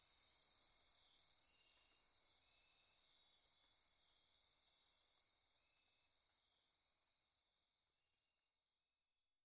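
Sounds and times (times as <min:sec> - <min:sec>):
insect chorus: 0:00.0 - 0:08.4.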